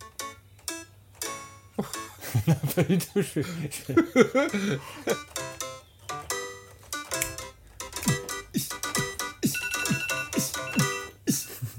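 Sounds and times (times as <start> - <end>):
kitchen timer alarm for ready pasta: 0.0 - 2.4, 4.2 - 11.7
laughter: 1.8 - 5.2
speech: 1.8 - 5.3
thumping beats: 4.4 - 11.5.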